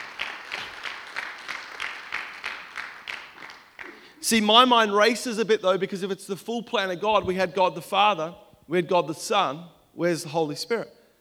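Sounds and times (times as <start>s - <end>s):
audience applause: 0.0s - 4.2s
speech: 4.2s - 11.0s.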